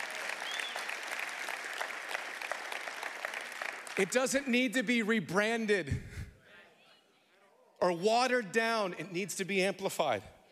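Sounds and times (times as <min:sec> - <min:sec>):
audience applause: 0:00.0 - 0:04.5
speech: 0:04.0 - 0:06.2, 0:07.8 - 0:10.3.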